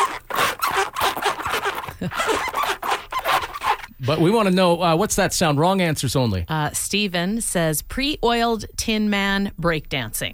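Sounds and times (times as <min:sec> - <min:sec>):
chair sliding on plastic chair mat: 0:00.0 - 0:03.9
speech: 0:02.0 - 0:02.5, 0:04.0 - 0:10.3.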